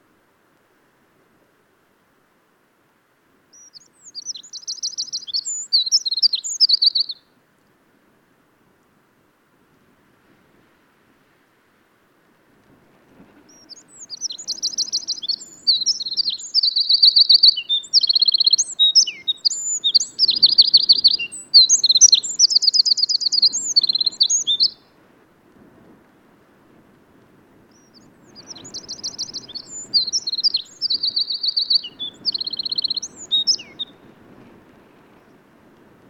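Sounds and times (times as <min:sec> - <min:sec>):
Eurasian wren singing: 0:03.5 - 0:07.2, 0:13.5 - 0:24.8, 0:27.7 - 0:34.0.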